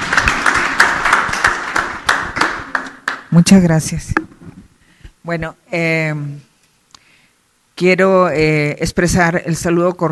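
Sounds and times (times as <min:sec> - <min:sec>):
applause: 0:00.0 - 0:03.3
speech: 0:03.3 - 0:04.3, 0:05.3 - 0:06.5, 0:07.8 - 0:10.0.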